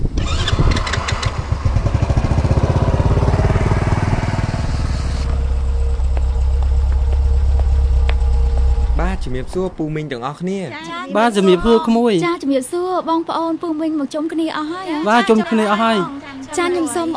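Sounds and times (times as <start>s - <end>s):
motorcycle engine running: 0.0s - 9.9s
speech: 9.2s - 17.1s.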